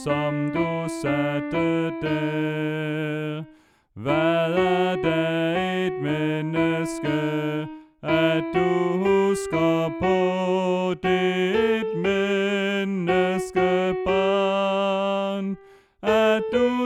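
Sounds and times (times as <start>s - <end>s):
alto voice singing: 0.0s - 16.8s.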